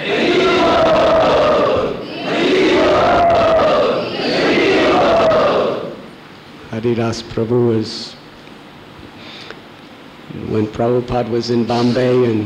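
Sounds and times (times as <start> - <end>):
crowd chanting in unison to welcome a guest: 0.0 - 6.1
speech: 6.8 - 8.2, 10.4 - 12.4.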